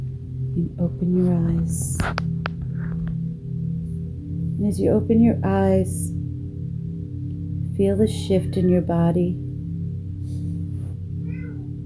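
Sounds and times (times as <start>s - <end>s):
loud low humming drone: 0.0s - 11.8s
speech: 0.6s - 2.5s, 4.6s - 6.2s, 7.8s - 9.4s
cat meowing: 11.2s - 11.8s.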